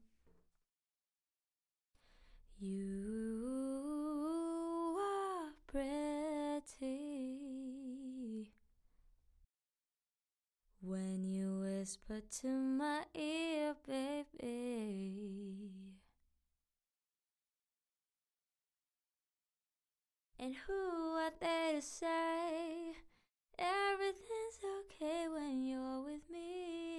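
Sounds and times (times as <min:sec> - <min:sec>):
a cappella pop singing in C major: 0:02.6 - 0:08.5, 0:10.8 - 0:16.0, 0:20.4 - 0:26.9.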